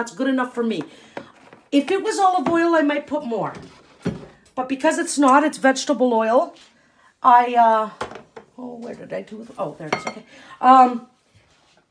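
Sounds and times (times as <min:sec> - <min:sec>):
speech: 0:00.0 - 0:03.8, 0:04.6 - 0:11.1
utensils clinking and scraping against a pot: 0:09.9 - 0:10.3.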